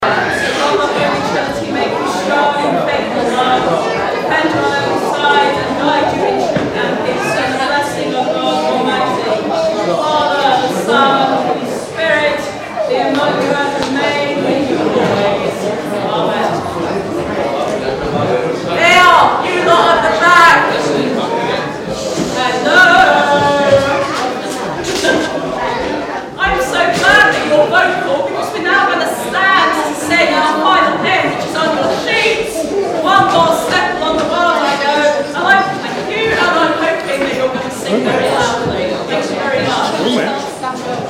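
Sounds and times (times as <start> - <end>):
rude congregation: 0.0 - 41.0.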